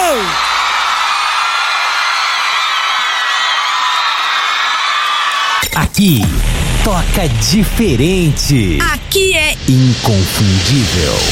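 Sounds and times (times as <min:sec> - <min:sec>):
audience cheering and whooping: 0:00.0 - 0:06.3
speech: 0:05.8 - 0:11.2.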